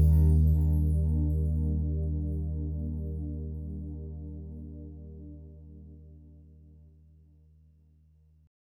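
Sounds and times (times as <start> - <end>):
R and B soul ballad on a Yamaha Tyros3 keyboard: 0.0 - 6.8.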